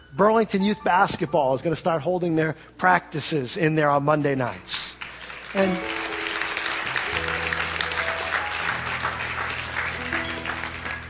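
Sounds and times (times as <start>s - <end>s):
speech: 0.1s - 6.0s
church audience clapping: 4.8s - 11.0s.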